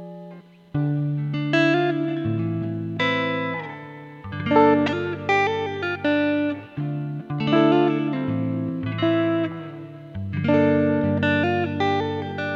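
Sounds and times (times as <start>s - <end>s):
R&B guitar grooves: 0.0s - 12.5s.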